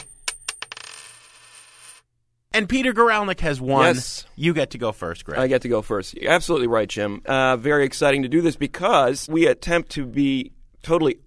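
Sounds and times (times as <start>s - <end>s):
tossed coin striking and bouncing on a hard surface: 0.0s - 2.1s
speech: 2.6s - 11.2s.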